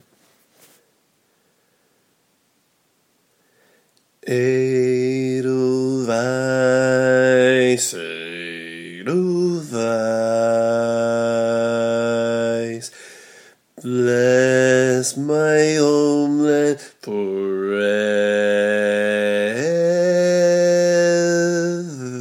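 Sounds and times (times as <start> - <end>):
barbershop bass singing tags: 4.2 - 12.9, 13.8 - 22.1.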